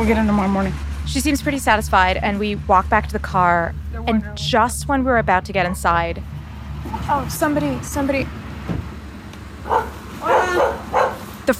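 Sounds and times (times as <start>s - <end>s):
speech: 0.0s - 6.4s, 7.1s - 8.4s
dog barking: 9.6s - 11.4s.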